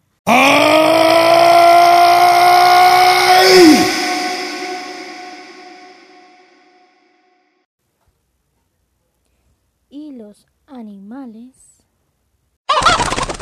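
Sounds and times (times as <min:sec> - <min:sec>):
voice imitating a giant's growl: 0:00.2 - 0:06.6.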